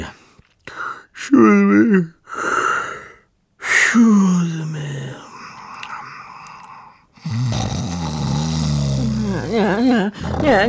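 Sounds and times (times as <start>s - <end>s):
speech: 0.0s - 2.5s, 3.9s - 4.9s, 10.0s - 10.6s
snoring: 6.4s - 10.6s.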